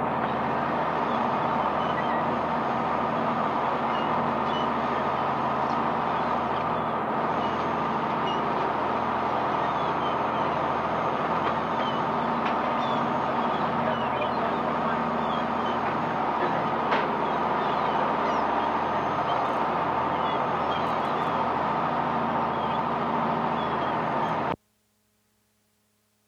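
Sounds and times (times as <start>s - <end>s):
birds: 0.2s - 24.6s.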